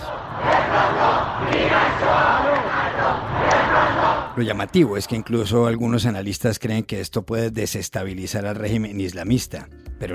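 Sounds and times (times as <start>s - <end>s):
protesters shouting in the street: 0.0s - 4.4s
speech: 4.4s - 10.1s.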